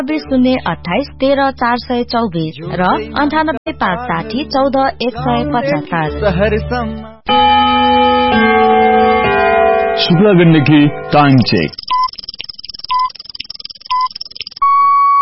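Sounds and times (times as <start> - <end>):
speech: 0.0 - 9.0, 10.0 - 11.8
radio time signal musical chime marking 10 pm: 7.3 - 11.7
radio time signal beeps marking 10 pm: 7.3 - 15.1.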